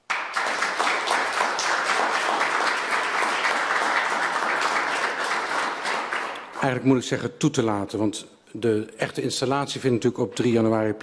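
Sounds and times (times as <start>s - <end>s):
audience applause: 0.0s - 6.9s
speech: 6.6s - 11.0s.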